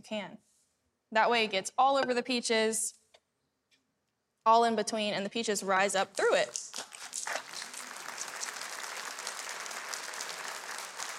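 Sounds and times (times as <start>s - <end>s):
speech: 0.0s - 0.5s, 1.1s - 3.0s, 4.4s - 6.9s
audience applause: 6.8s - 11.1s.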